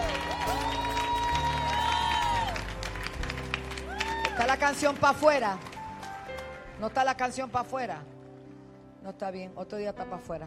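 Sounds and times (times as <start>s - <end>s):
scattered cheers: 0.0s - 2.7s, 3.9s - 4.6s
audience applause: 0.0s - 6.6s
speech: 4.6s - 5.7s, 6.8s - 8.2s, 9.0s - 10.4s.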